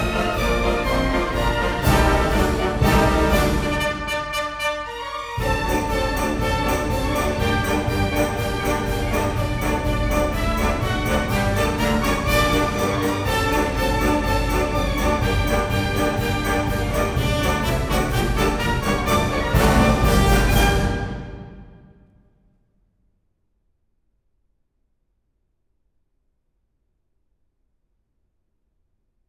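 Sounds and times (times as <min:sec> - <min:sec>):
symphony orchestra playing a Persian march: 0:00.0 - 0:22.0.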